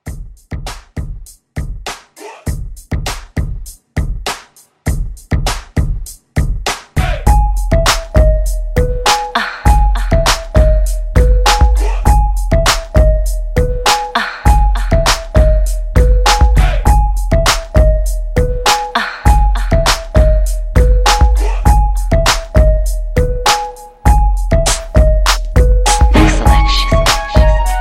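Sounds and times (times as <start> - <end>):
hip-hop drum beat: 0.0 - 27.7.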